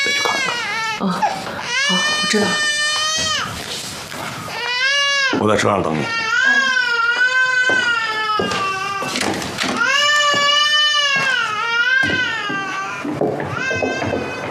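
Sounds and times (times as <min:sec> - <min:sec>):
small child crying after waking up: 0:00.0 - 0:03.6, 0:04.5 - 0:05.3, 0:06.1 - 0:14.4
speech: 0:01.0 - 0:02.7, 0:05.4 - 0:06.2.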